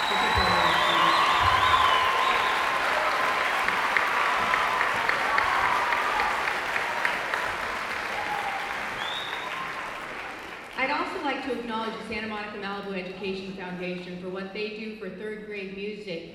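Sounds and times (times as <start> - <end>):
audience applause: 0.0 - 11.1
speech: 12.1 - 16.3.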